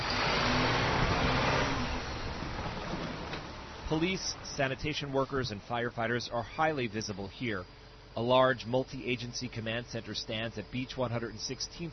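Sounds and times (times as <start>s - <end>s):
giant front-end loader engine revving: 0.0s - 5.6s
speech: 3.9s - 11.9s.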